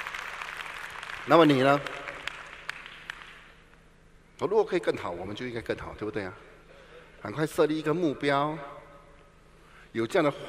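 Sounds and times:
applause: 0:00.0 - 0:03.8
speech: 0:01.3 - 0:02.0, 0:04.4 - 0:06.5, 0:07.2 - 0:08.8, 0:09.9 - 0:10.4.

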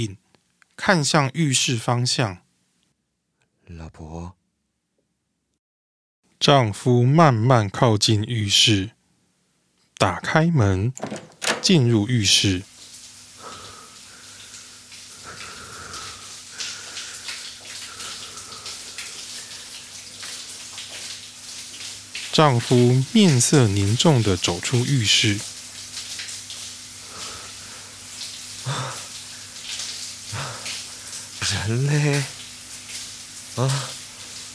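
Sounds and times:
speech: 0:00.0 - 0:00.2, 0:00.8 - 0:02.4, 0:03.7 - 0:04.4, 0:06.4 - 0:09.0, 0:10.0 - 0:12.7, 0:22.4 - 0:25.5, 0:31.7 - 0:32.4, 0:33.6 - 0:34.0
bathroom tap water left running: 0:10.8 - 0:34.5.

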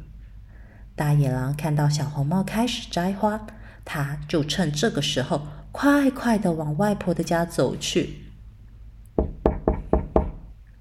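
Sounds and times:
speech: 0:01.0 - 0:08.2
knocking on a door: 0:09.2 - 0:10.5.

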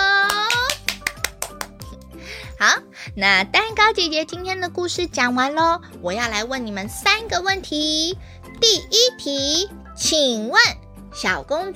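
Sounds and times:
clapping hands: 0:00.1 - 0:02.2
speech: 0:02.6 - 0:11.7.

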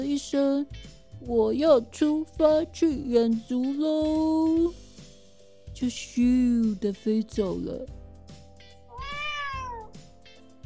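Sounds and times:
speech: 0:00.0 - 0:04.8, 0:05.8 - 0:08.0
cat meowing: 0:08.9 - 0:10.0.

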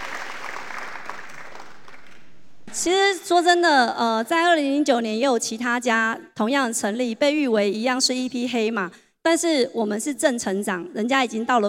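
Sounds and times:
audience applause: 0:00.0 - 0:02.6
speech: 0:02.8 - 0:11.6.

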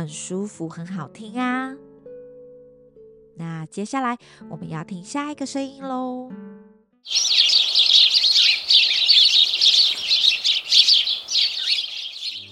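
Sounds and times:
speech: 0:00.0 - 0:01.9, 0:03.4 - 0:07.4
small birds chirping: 0:07.1 - 0:12.5.

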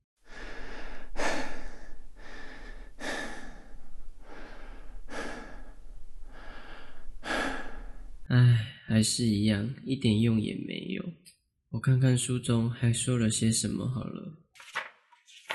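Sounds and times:
person taking slow deep breaths to calm down: 0:00.2 - 0:08.7
speech: 0:09.0 - 0:14.4.

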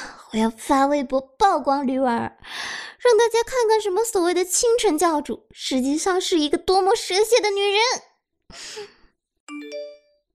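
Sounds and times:
speech: 0:00.3 - 0:09.9
breathy sigh: 0:08.5 - 0:09.1.

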